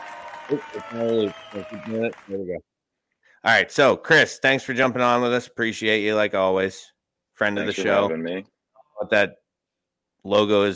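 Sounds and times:
crowd cheering and applauding: 0.0 - 2.6
speech: 0.5 - 2.7, 3.4 - 9.4, 10.2 - 10.7.

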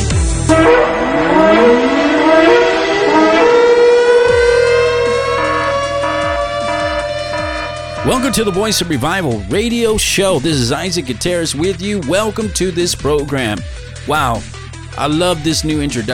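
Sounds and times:
warning sirens wailing: 0.0 - 10.9
low rhythmic pulses: 0.0 - 15.9
speech: 8.2 - 16.1.

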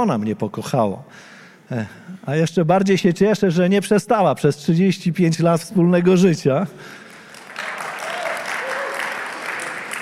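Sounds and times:
speech: 0.0 - 7.0
audience applause: 7.1 - 10.0.

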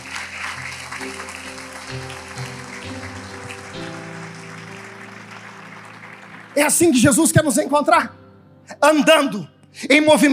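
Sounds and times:
audience applause: 0.0 - 7.9
speech: 6.6 - 8.2, 8.8 - 10.3.

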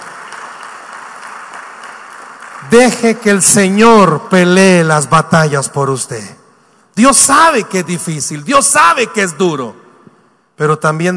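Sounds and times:
loud applause: 0.0 - 3.1
speech: 2.6 - 6.4, 7.0 - 9.8, 10.6 - 11.1.

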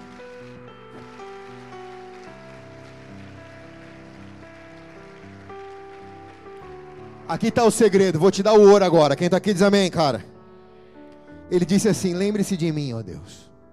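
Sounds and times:
audience applauding loudly: 0.0 - 8.8
speech: 7.3 - 10.3, 11.5 - 13.5.

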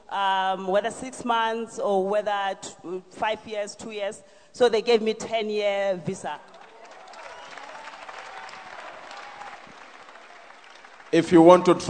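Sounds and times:
speech: 0.1 - 6.6, 11.1 - 11.8
audience clapping: 6.4 - 11.8.

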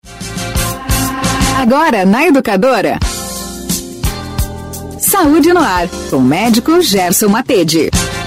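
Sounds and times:
radio segment jingle: 0.4 - 3.1
speech: 1.6 - 3.2, 5.1 - 8.1.

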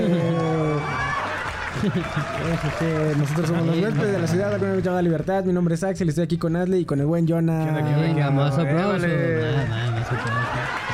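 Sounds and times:
laughter: 0.0 - 4.5, 8.2 - 10.9
applause: 0.0 - 5.2, 9.7 - 10.9
speech: 1.8 - 10.5.

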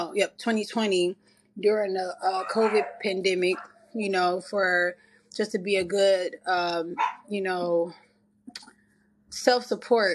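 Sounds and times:
speech: 0.0 - 8.7, 9.3 - 10.1
speaker's newly adopted second dog barking and yipping: 2.4 - 3.8, 7.0 - 7.3.

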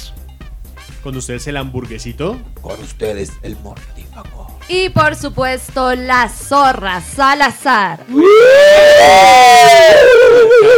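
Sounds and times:
speech: 1.0 - 10.7
person howling like a ghost: 8.2 - 10.7.

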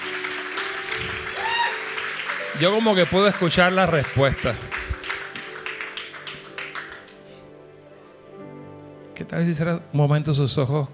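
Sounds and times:
audience applause: 0.0 - 7.3
speech: 2.6 - 4.7, 9.3 - 10.9.

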